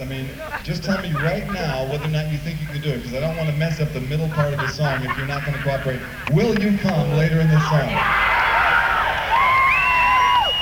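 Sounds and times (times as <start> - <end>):
speech: 0.0 - 8.4
laughter: 0.0 - 9.1
audience at a live song performance cheering and whooping: 7.4 - 10.6.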